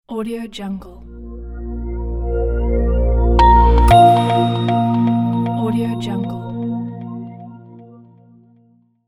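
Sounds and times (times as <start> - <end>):
minimal logo sound: 1.0 - 8.0.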